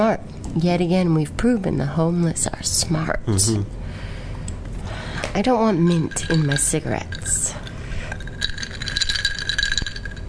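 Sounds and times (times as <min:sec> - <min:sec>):
speech: 0:00.0 - 0:03.8, 0:05.3 - 0:07.5
ice cubes rattling and clinking against glass in a drink: 0:05.9 - 0:10.2.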